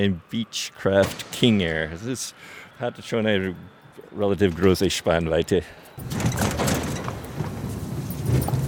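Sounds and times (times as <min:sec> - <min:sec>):
speech: 0:00.0 - 0:06.5
large heavy hangar roller door rumbling open: 0:06.0 - 0:08.6.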